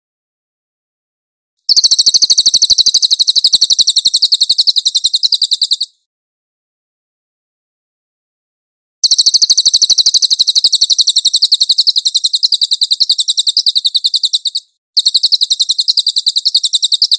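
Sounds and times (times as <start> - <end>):
high-pitched trilling song: 1.7 - 6.1, 9.0 - 17.1.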